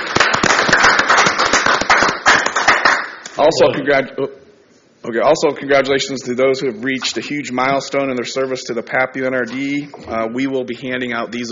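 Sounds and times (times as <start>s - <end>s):
audience applause at a natural resources district board meeting: 0.0s - 3.1s
speech: 3.4s - 11.4s.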